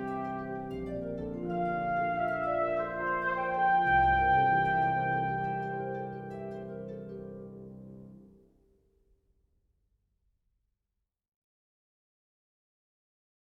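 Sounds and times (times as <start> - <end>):
world music: 0.0 - 8.3.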